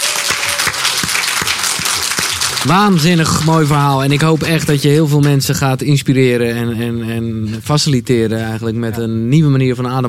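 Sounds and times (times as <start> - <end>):
audience applause: 0.0 - 5.2
sharp claps: 0.0 - 5.4
speech: 2.6 - 10.0.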